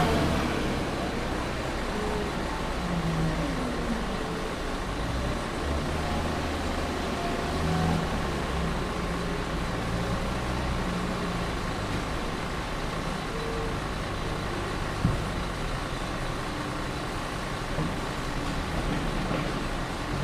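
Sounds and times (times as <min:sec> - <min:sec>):
construction site at night: 0:00.0 - 0:20.2.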